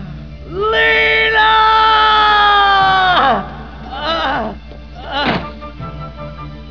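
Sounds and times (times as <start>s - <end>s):
person screaming: 0.5s - 5.4s.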